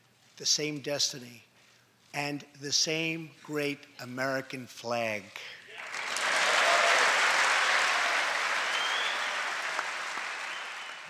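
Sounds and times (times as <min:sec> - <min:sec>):
speech: 0:00.4 - 0:01.5, 0:02.1 - 0:05.6
crowd cheering and applauding: 0:05.7 - 0:11.0.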